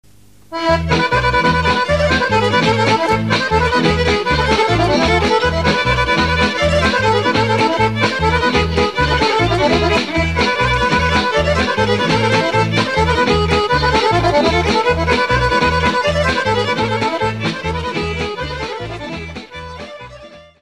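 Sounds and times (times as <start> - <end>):
Bulgarian kopanica folk dance music: 0.1 - 20.6.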